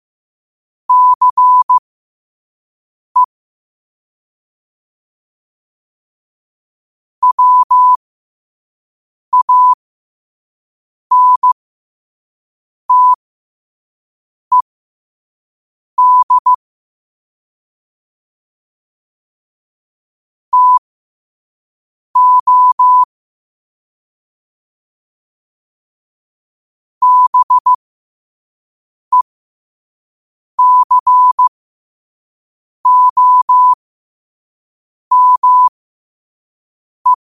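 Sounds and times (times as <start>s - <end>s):
morse code at 5 wpm: 0.9s - 1.8s, 7.2s - 8.0s, 9.4s - 9.8s, 11.1s - 11.6s, 12.9s - 13.2s, 16.0s - 16.6s, 20.6s - 20.8s, 22.2s - 23.1s, 27.0s - 27.8s, 30.6s - 31.5s, 32.9s - 33.8s, 35.1s - 35.8s.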